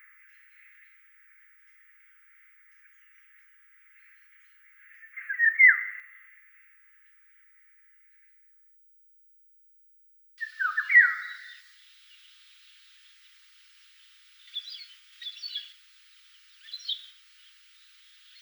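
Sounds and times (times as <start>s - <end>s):
Eurasian golden oriole calling: 10.4s - 18.3s.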